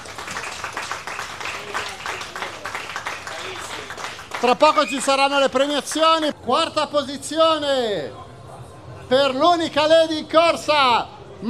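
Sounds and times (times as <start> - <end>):
audience applause: 0.0 - 6.3
speech: 4.4 - 8.2, 9.1 - 11.4.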